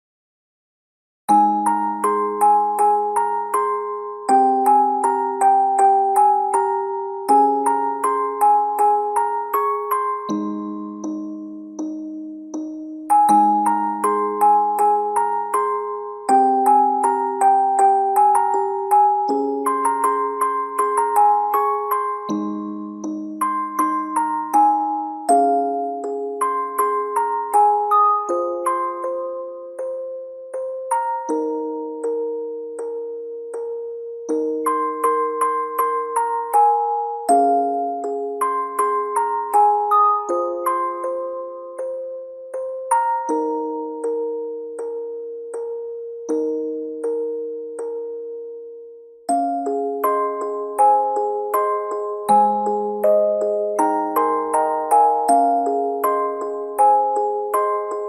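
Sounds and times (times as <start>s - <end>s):
music box: 1.3s - 58.0s.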